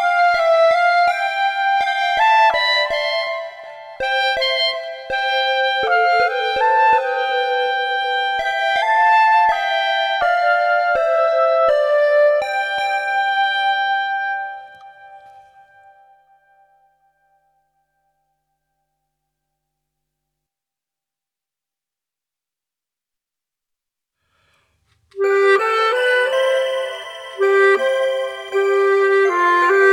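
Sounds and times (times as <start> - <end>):
clarinet: 0.0 - 16.7, 25.1 - 29.9.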